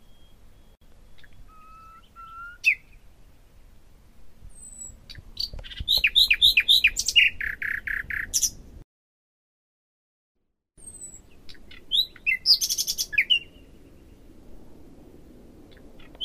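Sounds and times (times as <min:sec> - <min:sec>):
common nightingale singing: 0:00.0 - 0:03.0, 0:04.6 - 0:08.6, 0:10.8 - 0:13.7.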